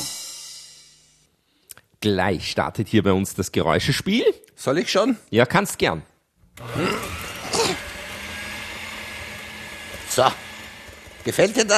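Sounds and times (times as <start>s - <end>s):
speech: 2.0s - 7.0s, 10.2s - 10.4s, 11.2s - 11.7s
kitchen blender whirring: 6.4s - 11.7s.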